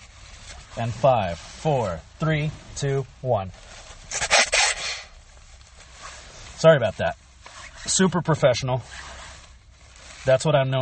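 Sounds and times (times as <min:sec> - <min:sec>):
speech: 0:00.8 - 0:03.8, 0:06.6 - 0:07.2, 0:07.8 - 0:09.2, 0:10.2 - 0:10.7
nose blowing: 0:04.1 - 0:05.2.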